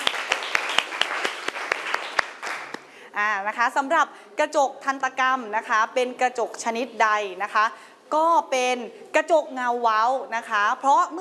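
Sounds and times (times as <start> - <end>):
classroom applause: 0.0 - 2.9
speech: 3.2 - 11.1.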